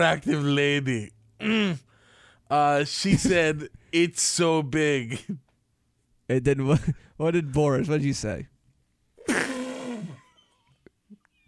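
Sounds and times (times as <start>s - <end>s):
speech: 0.0s - 1.9s, 2.5s - 5.4s, 6.3s - 8.5s
sneeze: 9.2s - 10.4s.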